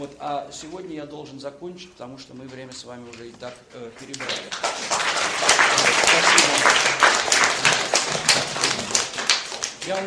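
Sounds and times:
speech: 0.0s - 7.2s, 9.8s - 10.0s
audience applause after a lecture: 4.1s - 10.0s.

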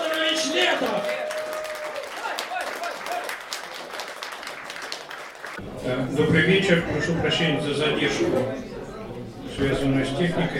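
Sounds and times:
audience applauding a guest onto stage: 0.0s - 5.6s
speech: 5.8s - 8.7s, 9.6s - 10.5s.

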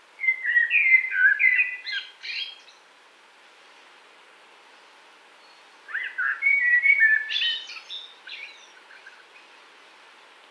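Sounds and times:
common blackbird singing: 0.2s - 2.8s, 5.4s - 9.2s.

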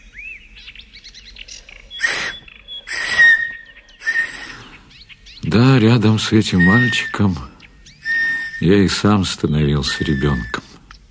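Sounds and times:
faint chirpy trills: 0.4s - 11.0s
shrill blasts on a homemade whistle pipe: 2.0s - 4.8s, 6.3s - 10.8s
speech: 5.5s - 7.6s, 8.6s - 10.6s.

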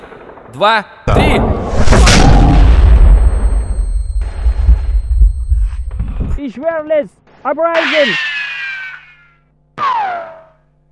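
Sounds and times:
grenade explosion: 0.0s - 6.4s
speech: 0.5s - 1.6s, 6.6s - 8.3s
crackles and thuds: 1.1s - 6.4s.

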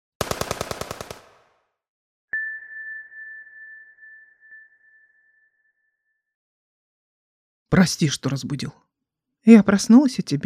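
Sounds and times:
machine gun burst: 0.2s - 1.4s
speech: 7.7s - 10.4s.

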